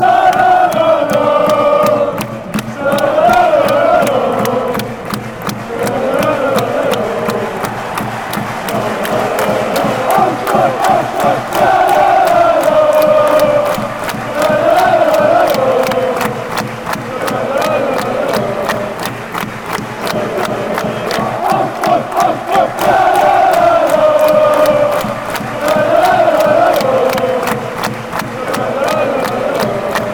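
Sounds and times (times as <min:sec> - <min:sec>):
fans chanting schalala: 0:00.0 - 0:30.1.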